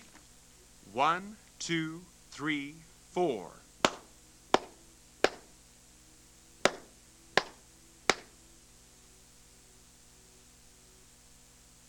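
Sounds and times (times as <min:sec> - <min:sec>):
speech: 0:01.0 - 0:03.6
hands clapping a four-beat rhythm: 0:03.8 - 0:05.5, 0:06.6 - 0:08.3.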